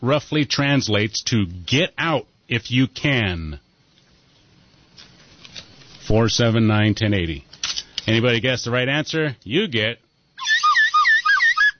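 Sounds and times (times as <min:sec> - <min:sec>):
speech: 0:00.0 - 0:03.6, 0:06.1 - 0:10.5
slide whistle being blown: 0:10.4 - 0:11.7.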